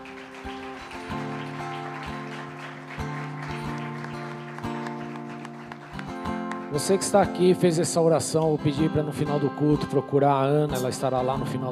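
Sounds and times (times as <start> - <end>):
audience applauding: 0.0 - 7.7
speech: 6.7 - 11.7.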